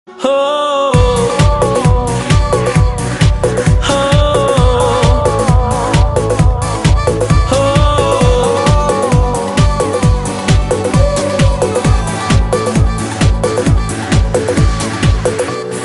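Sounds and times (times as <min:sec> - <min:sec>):
tune: 0:01.0 - 0:15.8.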